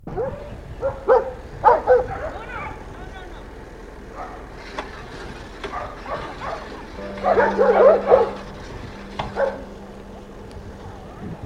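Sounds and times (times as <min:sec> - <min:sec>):
dogs: 0:00.1 - 0:02.4, 0:04.1 - 0:04.5, 0:05.6 - 0:09.7.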